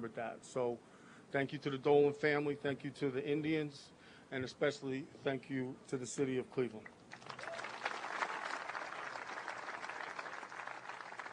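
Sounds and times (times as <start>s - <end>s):
speech: 0.0s - 7.0s
audience applause: 7.1s - 11.3s.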